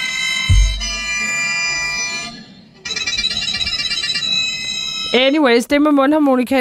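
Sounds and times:
walrus whistling: 0:00.0 - 0:05.4
speech: 0:05.1 - 0:06.5.

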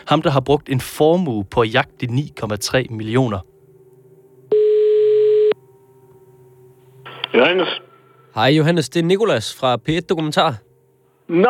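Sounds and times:
speech: 0:00.1 - 0:03.5, 0:07.3 - 0:10.6, 0:11.3 - 0:11.4
telephone ringing tone: 0:04.5 - 0:05.6.

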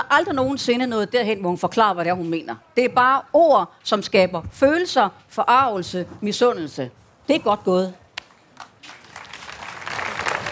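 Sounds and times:
speech: 0:00.1 - 0:08.0
audience applause at a Danish talk on politics: 0:08.8 - 0:10.5.

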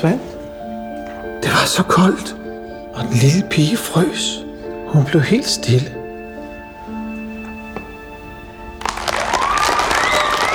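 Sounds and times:
speech: 0:00.0 - 0:00.3, 0:01.4 - 0:02.4, 0:03.0 - 0:06.0
audience applause: 0:08.8 - 0:10.5.

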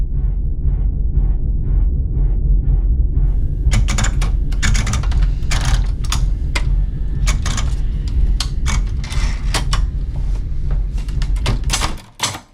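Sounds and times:
MRI scanner knocking: 0:00.1 - 0:12.3.

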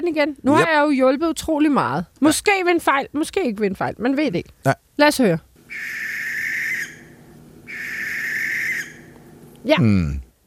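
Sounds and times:
speech: 0:00.0 - 0:06.1, 0:09.6 - 0:10.2
water rail calls: 0:05.7 - 0:09.2.

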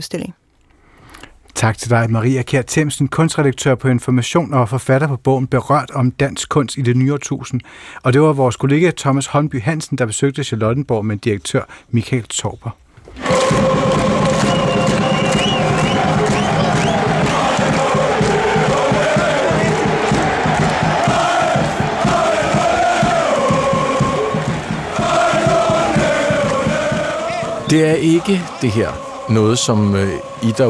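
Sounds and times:
speech: 0:00.0 - 0:00.4, 0:01.6 - 0:14.5, 0:27.7 - 0:30.6
football fans chanting and singing: 0:13.1 - 0:30.6.

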